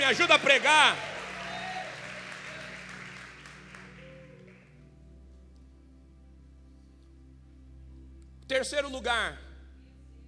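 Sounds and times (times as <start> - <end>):
audience clapping: 0.0 - 4.7
speech: 0.1 - 1.1, 8.5 - 9.4.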